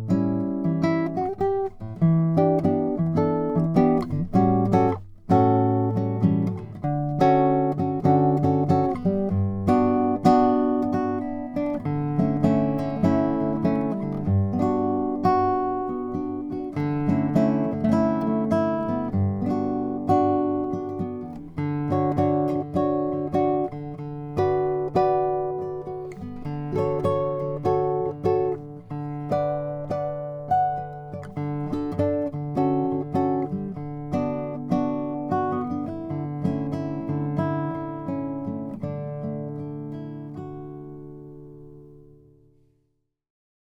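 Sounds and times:
Lowden S25J Indian rosewood guitar: 0.0s - 42.8s.

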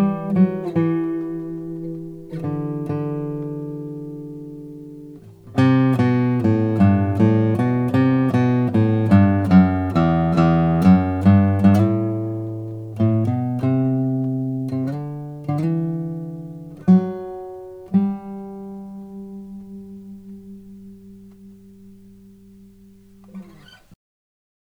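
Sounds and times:
Lowden F50 guitar: 0.0s - 24.0s.

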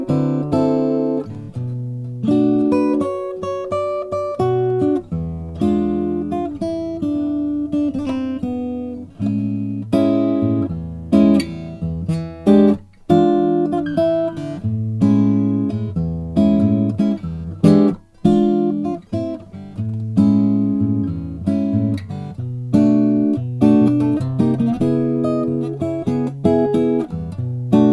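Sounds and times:
Lowden F50C acoustic guitar of Bastogne walnut: 0.0s - 27.9s.

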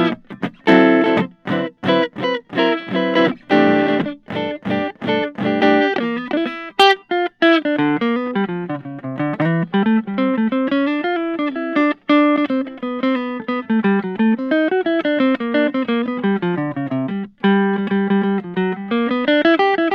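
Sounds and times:
Guild Benedetto flame maple guitar: 0.0s - 19.9s.

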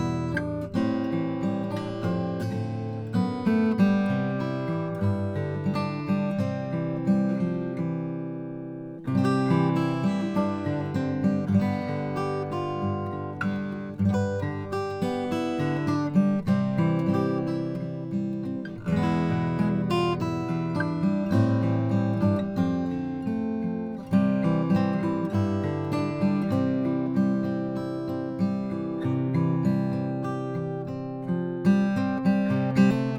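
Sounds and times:
OM 42 acoustic guitar of Brazilian rosewood: 0.0s - 33.1s.

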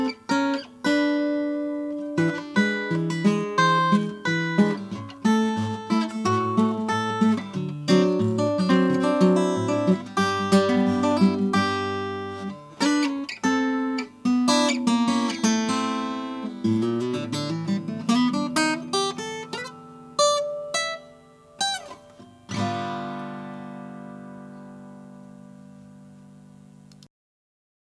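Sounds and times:
1936 Kalamazoo KG14 sunburst guitar: 0.0s - 27.1s.

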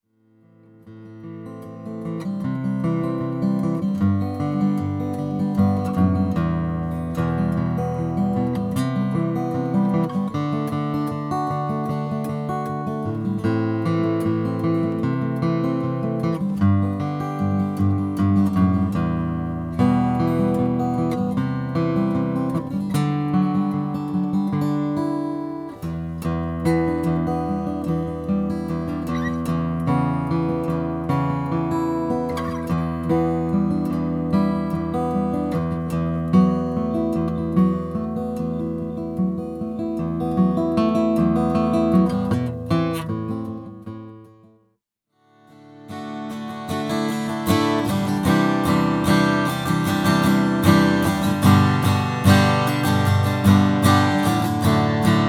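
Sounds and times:
graphite guitar: 0.0s - 55.2s.

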